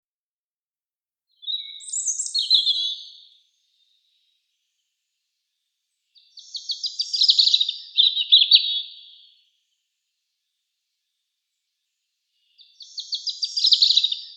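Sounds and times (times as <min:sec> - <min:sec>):
European robin singing: 0:01.4 - 0:04.3, 0:06.1 - 0:09.4, 0:12.4 - 0:14.3.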